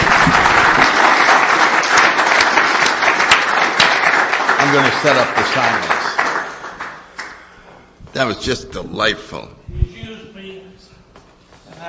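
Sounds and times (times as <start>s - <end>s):
audience applause at a recovery gathering session: 0.0s - 7.4s
speech: 4.7s - 6.0s, 8.2s - 9.8s.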